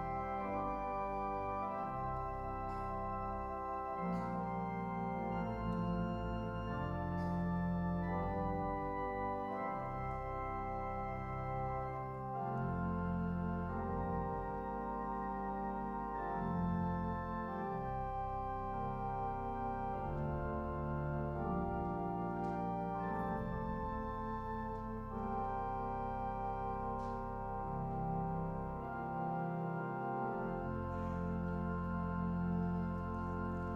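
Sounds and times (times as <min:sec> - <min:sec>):
organ music: 0:00.0 - 0:33.7.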